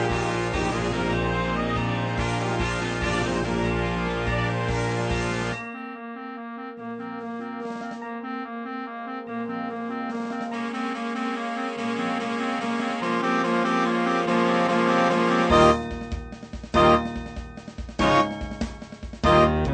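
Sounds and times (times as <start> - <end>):
fanfare: 0.0 - 5.7, 9.7 - 19.7.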